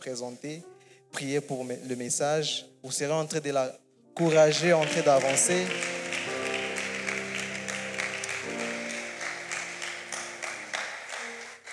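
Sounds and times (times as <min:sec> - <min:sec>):
speech: 0:00.0 - 0:06.0
church congregation applauding: 0:04.2 - 0:11.7
sustained organ-like tones: 0:04.2 - 0:11.7.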